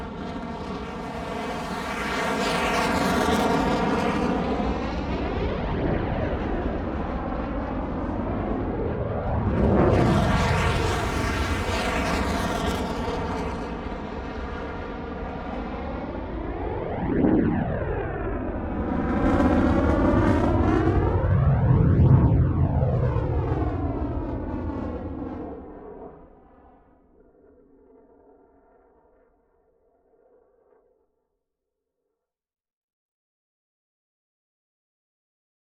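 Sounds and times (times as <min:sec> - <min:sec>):
F-16 jet fighter passing by: 0:00.0 - 0:26.7.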